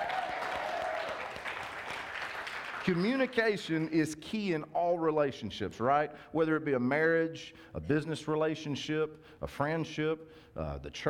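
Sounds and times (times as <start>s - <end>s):
audience applause: 0.0s - 3.0s
speech: 2.8s - 11.0s.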